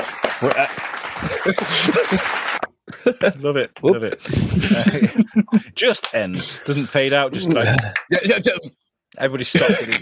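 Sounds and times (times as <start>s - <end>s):
round of applause: 0.0s - 2.7s
laughter: 0.4s - 5.8s, 9.5s - 10.0s
speech: 0.4s - 10.0s.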